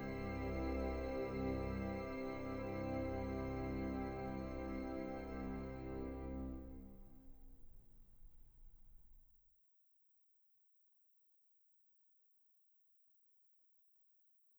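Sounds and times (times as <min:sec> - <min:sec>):
choral requiem movement: 0:00.0 - 0:07.3.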